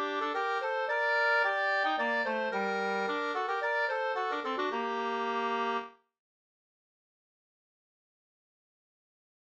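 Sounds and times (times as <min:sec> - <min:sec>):
polska folk dance tune: 0:00.0 - 0:05.9.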